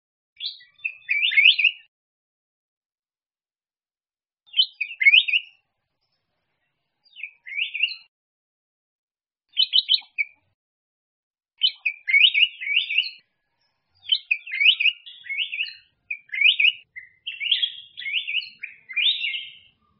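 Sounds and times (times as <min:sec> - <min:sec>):
black-crested bulbul singing: 0:00.4 - 0:01.9, 0:04.5 - 0:05.6, 0:07.0 - 0:08.1, 0:09.5 - 0:10.5, 0:11.6 - 0:19.9.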